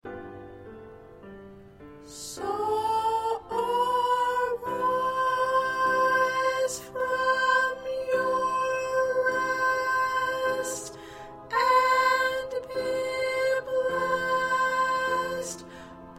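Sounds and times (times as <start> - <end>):
soprano singing choir parts: 2.0 - 16.1.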